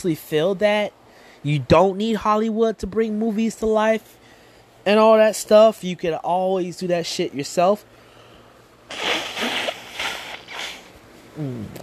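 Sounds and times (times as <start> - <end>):
speech: 0.0 - 4.2, 4.8 - 8.0, 11.4 - 11.8
person blowing nose: 8.9 - 11.8.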